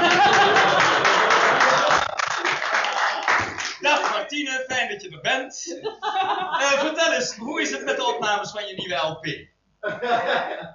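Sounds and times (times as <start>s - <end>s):
laughter: 0.0s - 3.4s, 5.7s - 8.2s, 9.8s - 10.7s
audience applause: 0.0s - 4.2s
speech: 4.3s - 10.7s.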